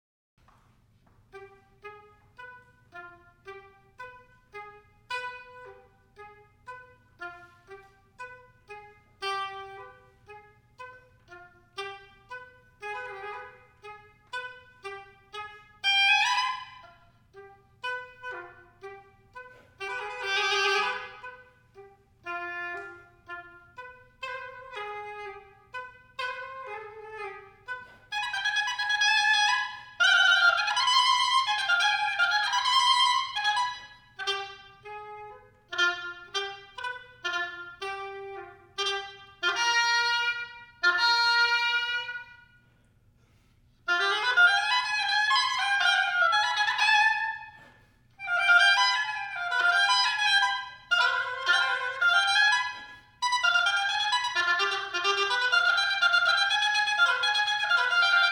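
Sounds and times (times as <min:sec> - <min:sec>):
galop music: 0:01.0 - 0:42.6, 0:43.8 - 0:58.3.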